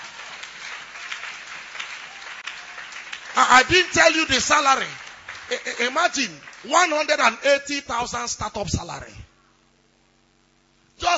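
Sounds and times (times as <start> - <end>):
audience clapping: 0.0 - 7.5
speech: 3.4 - 9.2.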